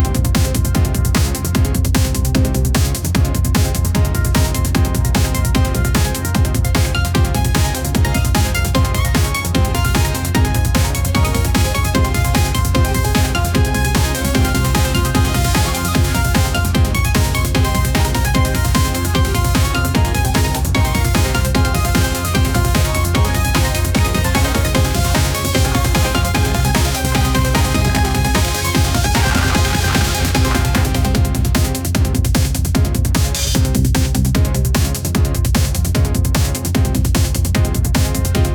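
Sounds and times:
upbeat action hack and slash music: 0:00.0 - 0:38.5.

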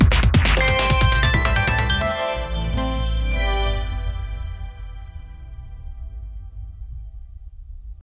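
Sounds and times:
bouncy intro jingle: 0:00.1 - 0:06.3.

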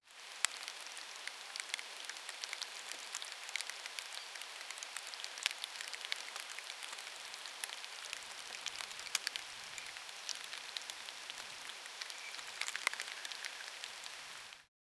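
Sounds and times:
forest ambience: 0:00.1 - 0:14.7.

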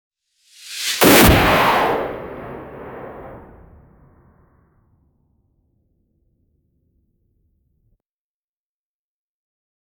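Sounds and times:
shooting stars passing: 0:00.6 - 0:04.3.

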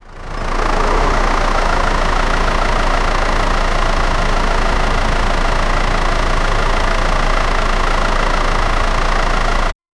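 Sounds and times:
bus engine idling: 0:00.0 - 0:09.8.

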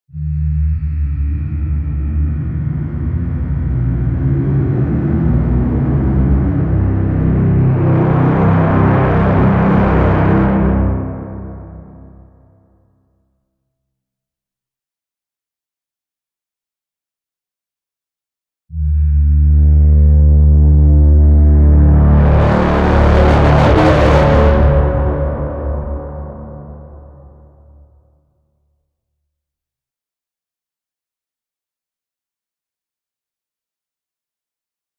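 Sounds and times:
menacing deep booming: 0:00.2 - 0:12.5, 0:18.8 - 0:27.8.

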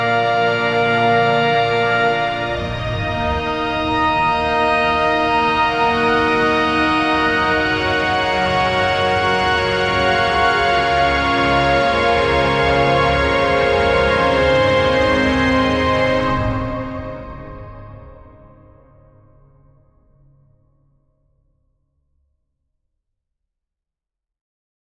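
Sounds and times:
powerful cinematic trumpet: 0:00.0 - 0:18.2.

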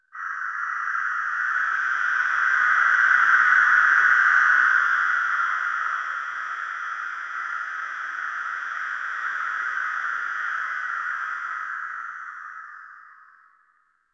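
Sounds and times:
mystical forest texture: 0:00.0 - 0:14.0.

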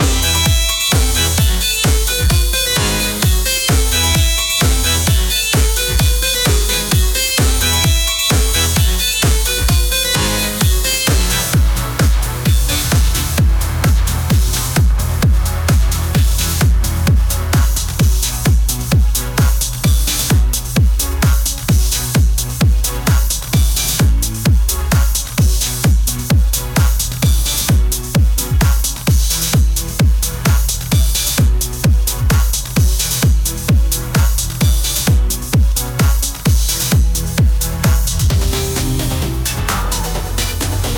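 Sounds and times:
disco music: 0:00.0 - 0:40.9.

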